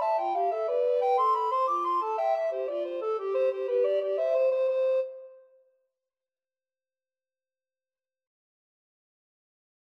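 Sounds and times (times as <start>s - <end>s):
alto recorder duet: 0.0s - 5.5s.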